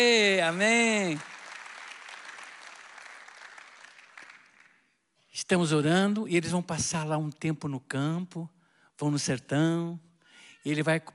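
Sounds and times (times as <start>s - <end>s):
speech: 0.0s - 1.4s, 5.4s - 11.1s
audience applause: 0.4s - 4.8s.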